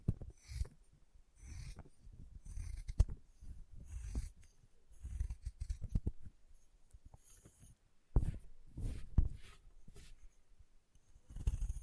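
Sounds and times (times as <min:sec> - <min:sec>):
chalk carving and cutting: 0:00.2 - 0:00.8, 0:01.4 - 0:06.1, 0:07.2 - 0:10.2, 0:11.2 - 0:11.8.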